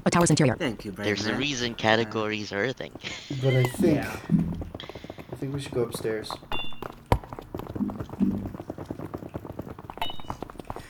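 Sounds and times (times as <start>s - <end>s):
speech: 0.0s - 6.6s
small light pattering footsteps: 0.0s - 10.8s
laughter: 0.6s - 5.2s.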